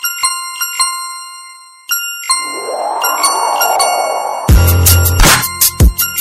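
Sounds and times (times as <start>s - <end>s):
club music: 2.3s - 5.9s.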